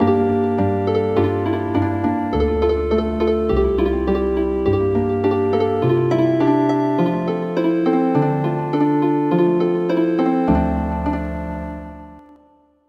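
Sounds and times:
healing harp: 0.0s - 12.4s.

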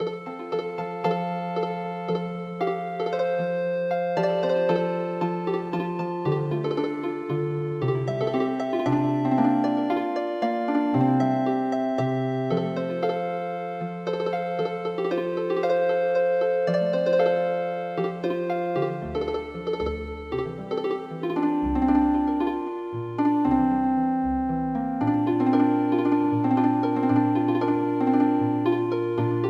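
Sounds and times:
healing harp music: 0.0s - 29.4s.

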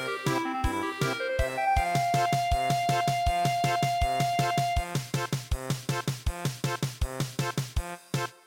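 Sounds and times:
traditional German polka in MIDI: 0.0s - 8.4s.

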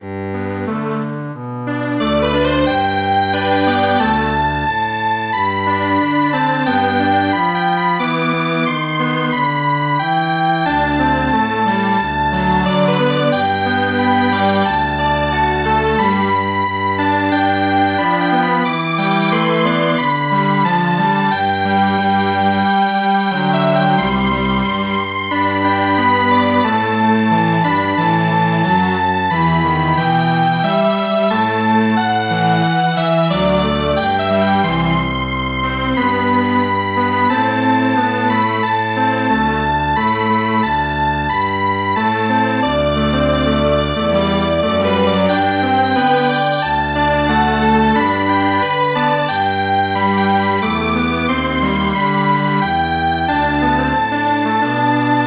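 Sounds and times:
string quartet playing traditional music: 0.0s - 55.2s.

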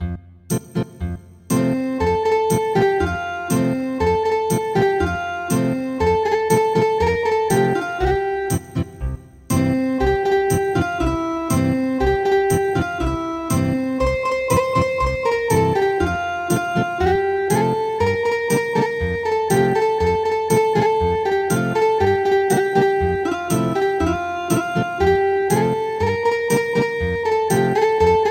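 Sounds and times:
ethnic guitar music: 0.5s - 28.2s.

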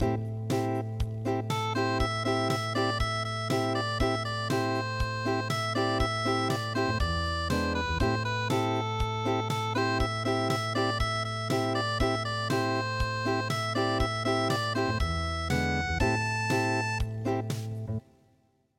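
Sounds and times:
unplugged MIDI music: 0.0s - 17.9s.

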